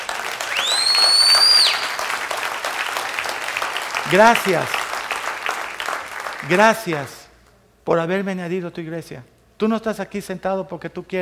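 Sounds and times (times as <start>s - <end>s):
audience applause: 0.0s - 7.2s
speech: 4.1s - 4.8s, 6.4s - 7.2s, 7.9s - 11.1s.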